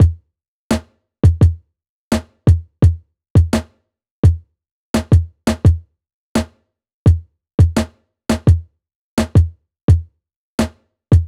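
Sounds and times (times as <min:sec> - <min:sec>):
drum: 0:00.0 - 0:01.6, 0:02.2 - 0:03.7, 0:05.0 - 0:05.8, 0:07.1 - 0:08.6, 0:09.2 - 0:10.0, 0:10.6 - 0:11.2.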